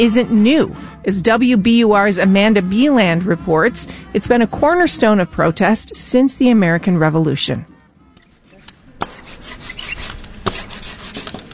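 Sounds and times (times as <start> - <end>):
speech: 0.0 - 7.8
paint roller spreading ink on linoleum: 9.0 - 11.5.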